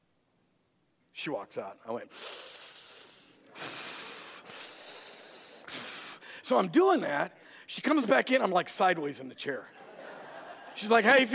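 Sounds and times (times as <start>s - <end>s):
speech: 1.2s - 2.6s, 6.5s - 9.8s, 10.8s - 11.3s
voice imitating breathing in gas through nosepiece: 2.1s - 6.4s
laughter: 9.7s - 11.3s.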